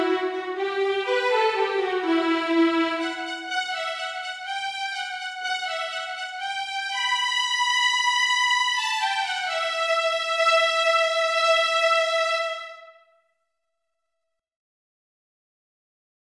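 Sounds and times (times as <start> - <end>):
violin piece: 0.0 - 13.0.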